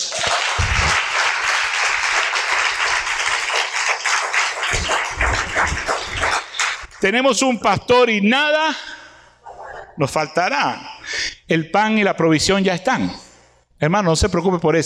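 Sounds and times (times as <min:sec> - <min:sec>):
audience clapping: 0:00.0 - 0:07.2
speech: 0:07.0 - 0:08.9, 0:10.0 - 0:10.9, 0:11.5 - 0:13.2, 0:13.8 - 0:14.8.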